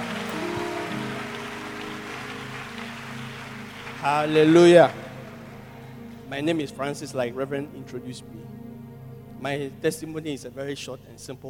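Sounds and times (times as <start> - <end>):
hand clapping: 0.0 - 5.7
speech: 4.0 - 5.0, 6.3 - 8.6, 9.4 - 11.4.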